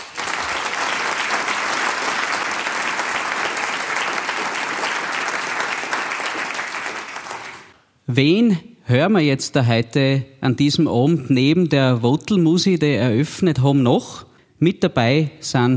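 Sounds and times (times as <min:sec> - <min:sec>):
audience applause: 0:00.0 - 0:07.8
speech: 0:08.1 - 0:15.7.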